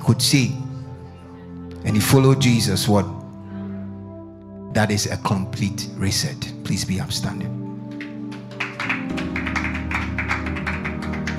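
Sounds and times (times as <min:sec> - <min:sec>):
speech: 0:00.1 - 0:00.6, 0:01.8 - 0:03.2, 0:04.7 - 0:07.6
audience clapping hands: 0:07.8 - 0:11.3.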